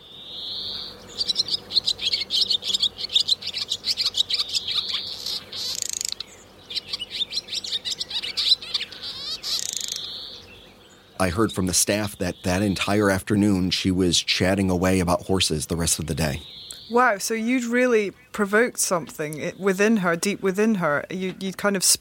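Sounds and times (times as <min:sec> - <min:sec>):
bird call: 0:00.0 - 0:13.5, 0:15.9 - 0:18.4
speech: 0:11.2 - 0:21.9.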